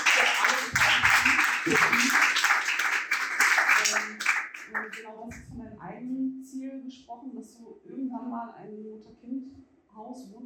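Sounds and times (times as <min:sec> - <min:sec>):
audience applause: 0:00.0 - 0:05.0
laughter: 0:00.2 - 0:02.4
speech: 0:10.0 - 0:10.4.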